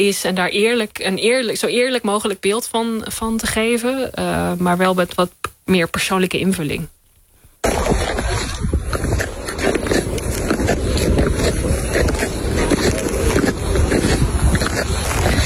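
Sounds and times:
speech: 0.0 - 7.0
ice skates scraping and gliding over natural ice: 7.6 - 15.4.

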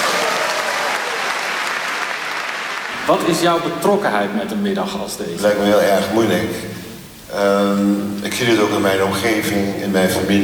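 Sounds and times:
audience applause: 0.0 - 3.6
speech: 3.1 - 10.4.

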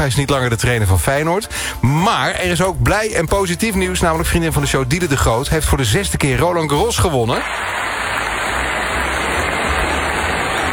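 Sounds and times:
speech: 0.0 - 8.2
loud applause: 7.3 - 10.7.

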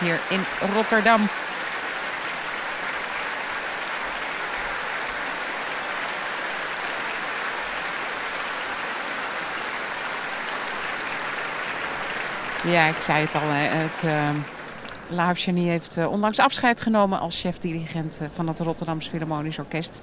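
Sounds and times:
speech: 0.0 - 1.6, 12.6 - 20.0
large concert audience applause: 0.0 - 15.3.

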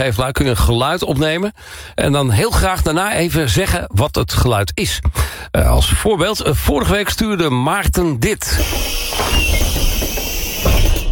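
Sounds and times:
speech: 0.0 - 9.9
city bus doors opening: 8.6 - 11.1.

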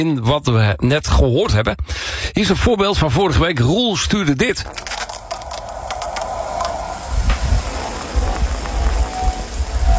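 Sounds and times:
speech: 0.0 - 5.1
shower running: 4.7 - 9.9.

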